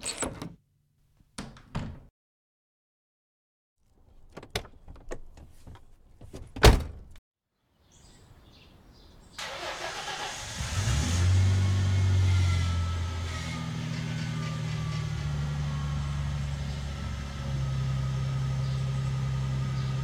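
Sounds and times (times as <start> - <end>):
faulty car engine revving in a garage: 9.4 - 20.0.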